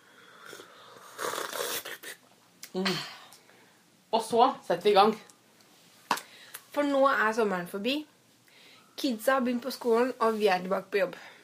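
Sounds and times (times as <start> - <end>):
slurping hot coffee: 0.4 - 2.2
speech: 2.8 - 3.1, 4.1 - 5.3, 6.8 - 8.1, 9.0 - 11.3.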